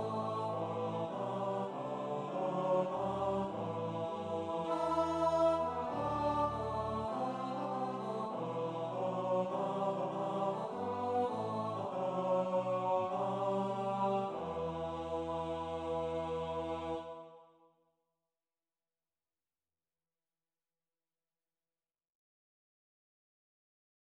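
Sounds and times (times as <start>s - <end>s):
bass: 0.0s - 17.0s.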